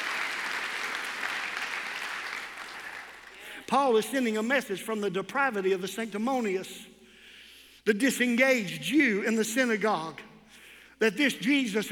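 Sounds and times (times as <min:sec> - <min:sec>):
audience clapping hands: 0:00.0 - 0:03.7
speech: 0:03.7 - 0:06.9, 0:07.9 - 0:10.3, 0:11.0 - 0:11.9.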